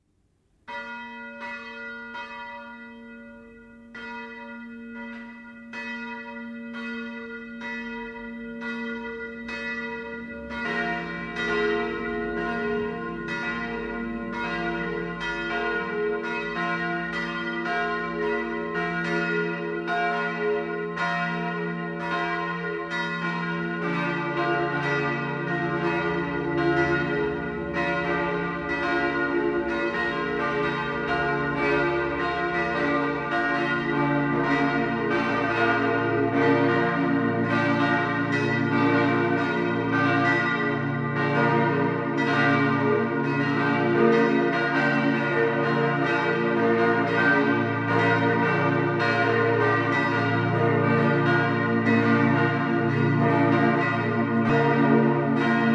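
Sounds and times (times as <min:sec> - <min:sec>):
Reformed Church bells in Hundwil AR ringing: 0:00.6 - 0:55.7.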